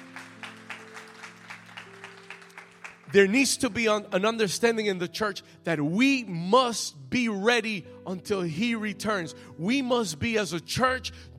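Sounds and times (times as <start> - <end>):
audience clapping in unison: 0.0 - 3.5
speech: 3.1 - 11.3.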